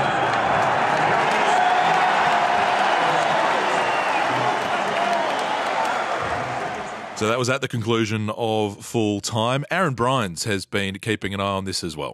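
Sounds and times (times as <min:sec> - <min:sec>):
crowd cheering at football full time: 0:00.0 - 0:07.6
speech: 0:07.2 - 0:12.1.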